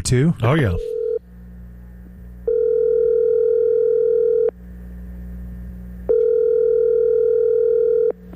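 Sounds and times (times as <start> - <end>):
speech: 0.1 - 0.9
telephone ringback tones while dialing a sports hotline: 0.8 - 1.2, 2.4 - 4.6, 6.1 - 8.2.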